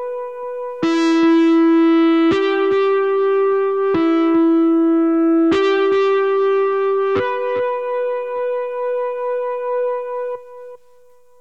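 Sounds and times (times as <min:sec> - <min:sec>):
electric guitar: 0:00.0 - 0:10.8.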